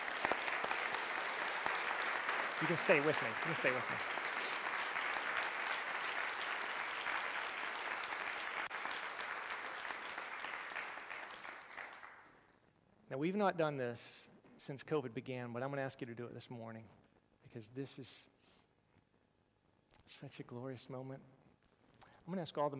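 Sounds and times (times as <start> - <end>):
audience applauding: 0.0 - 12.3
speech: 2.6 - 4.2, 13.2 - 18.4, 20.1 - 21.4, 22.3 - 22.7.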